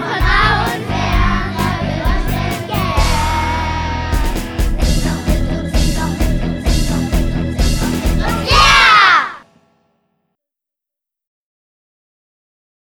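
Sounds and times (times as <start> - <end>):
song: 0.0 - 9.7.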